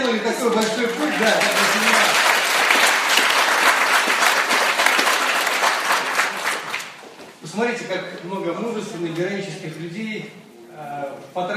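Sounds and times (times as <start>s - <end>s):
audience clapping: 0.0s - 7.4s
speech: 0.1s - 1.8s, 7.9s - 11.5s.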